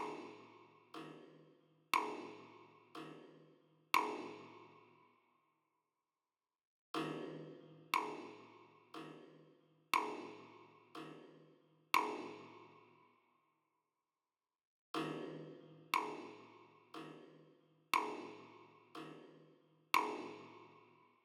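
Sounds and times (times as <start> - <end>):
drums and percussion: 0.0 - 1.4, 2.0 - 3.4, 4.0 - 4.6, 7.0 - 9.4, 10.0 - 11.4, 12.0 - 12.6, 15.0 - 17.4, 18.0 - 19.4, 20.0 - 20.7.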